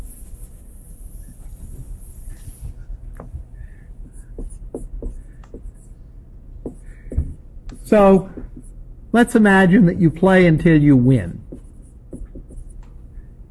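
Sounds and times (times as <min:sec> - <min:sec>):
writing being erased from a board: 0:01.2 - 0:05.9, 0:11.5 - 0:12.8
speech: 0:07.9 - 0:08.4, 0:09.2 - 0:11.4.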